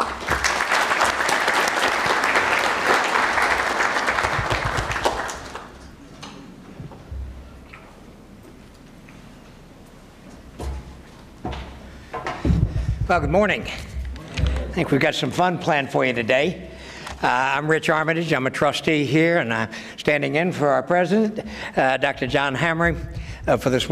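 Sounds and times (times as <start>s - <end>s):
audience applause welcoming a speaker at a Korea-U.S. strategic forum: 0.0s - 5.8s
room noise: 0.0s - 23.9s
speech: 13.1s - 13.9s, 14.8s - 23.9s.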